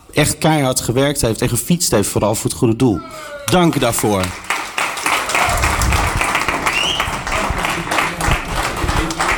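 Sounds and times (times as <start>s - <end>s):
speech: 0.2s - 4.6s
crowd applause: 3.5s - 9.3s.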